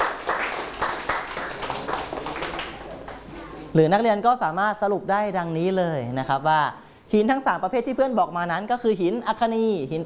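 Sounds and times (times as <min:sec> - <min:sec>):
classroom applause: 0:00.0 - 0:03.3
speech: 0:03.8 - 0:10.0.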